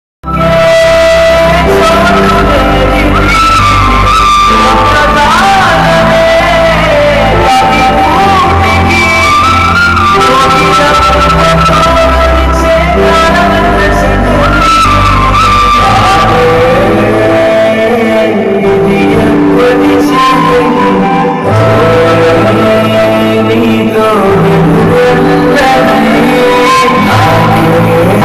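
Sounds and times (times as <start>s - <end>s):
sad background music ringtone: 0.4s - 28.2s.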